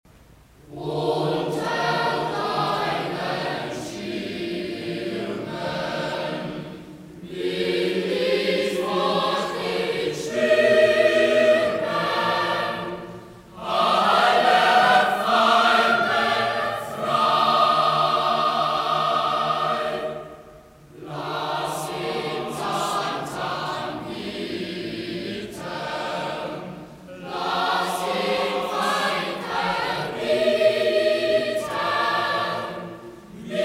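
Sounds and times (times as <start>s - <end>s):
choir singing: 0.6s - 33.6s.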